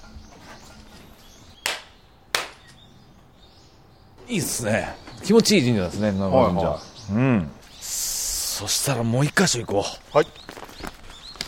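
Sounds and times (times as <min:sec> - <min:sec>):
ritual hand claps at Shinto shrine: 0:01.6 - 0:02.6
speech: 0:04.3 - 0:08.0, 0:08.6 - 0:10.6.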